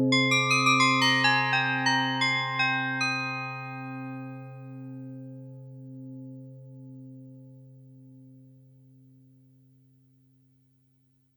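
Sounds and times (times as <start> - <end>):
resynthesized doorbell: 0.1 - 5.3.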